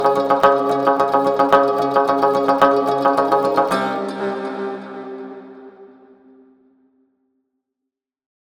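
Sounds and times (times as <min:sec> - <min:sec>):
acoustic music: 0:00.0 - 0:06.5.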